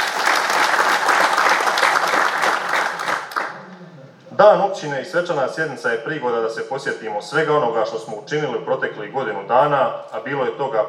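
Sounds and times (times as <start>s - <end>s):
audience applause at a municipal day ceremonial session: 0.0s - 3.6s
speech: 4.4s - 10.8s.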